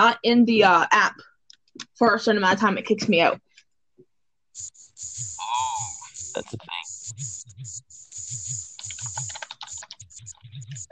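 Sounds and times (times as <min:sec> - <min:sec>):
speech: 0:00.0 - 0:03.5, 0:06.4 - 0:07.3
computer keyboard typing: 0:04.6 - 0:10.9.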